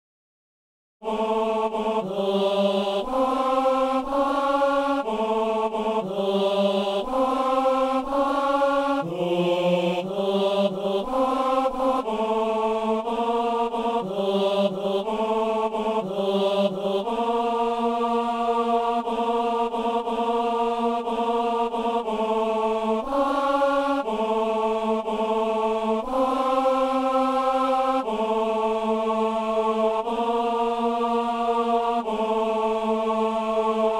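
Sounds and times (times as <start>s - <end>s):
tenor singing a simple mass Gloria: 1.0s - 33.9s.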